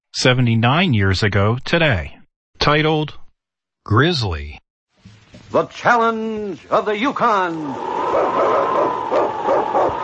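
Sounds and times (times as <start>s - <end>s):
speech: 0.2s - 3.2s, 3.9s - 4.6s, 5.5s - 10.0s
lead sled dog barking and yelping: 8.0s - 10.0s.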